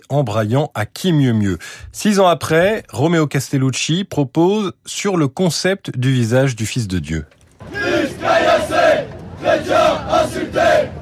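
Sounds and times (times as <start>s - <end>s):
speech: 0.0s - 7.4s
crowd of protesters chanting in unison: 7.6s - 11.0s.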